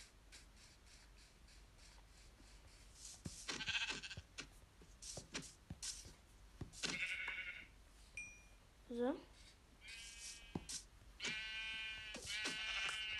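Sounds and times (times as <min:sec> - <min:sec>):
video game sheep bleating: 0:03.5 - 0:04.3, 0:06.9 - 0:07.7, 0:09.8 - 0:13.1
speech: 0:09.0 - 0:09.3.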